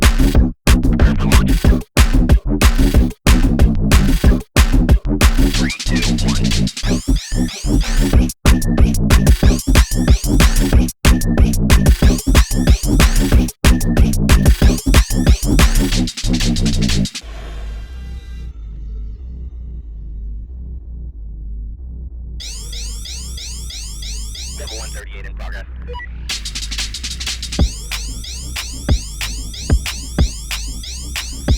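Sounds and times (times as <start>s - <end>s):
tabata workout music: 0.0s - 17.2s, 22.4s - 25.0s, 26.3s - 31.5s.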